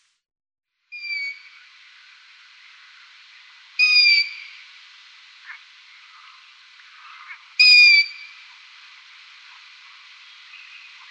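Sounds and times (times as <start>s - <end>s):
Long-eared owl high squeaky calls: 1.0s - 1.5s, 3.8s - 4.6s, 5.4s - 8.6s.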